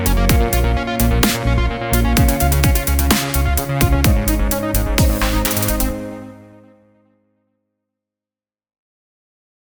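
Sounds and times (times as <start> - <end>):
fat saw synth lead: 0.0 - 6.6.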